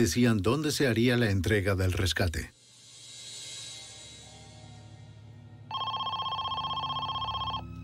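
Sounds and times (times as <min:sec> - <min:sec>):
speech: 0:00.0 - 0:02.6
telephone ringing: 0:05.7 - 0:07.8.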